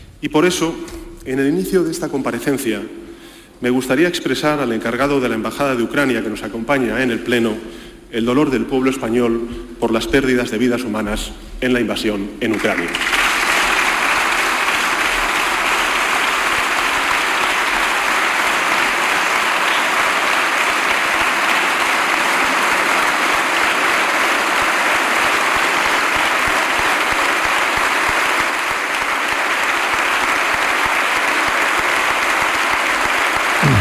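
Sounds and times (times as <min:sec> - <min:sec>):
speech: 0:00.2 - 0:03.0, 0:03.6 - 0:13.2
standing applause from parliament deputies: 0:12.5 - 0:33.8.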